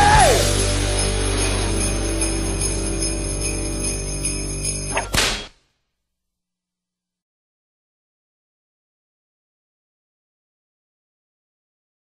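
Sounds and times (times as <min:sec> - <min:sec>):
Christmas song: 0:00.0 - 0:05.0.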